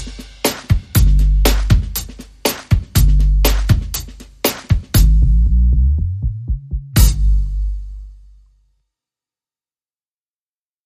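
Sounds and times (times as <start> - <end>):
drum and bass music: 0.0 - 8.1.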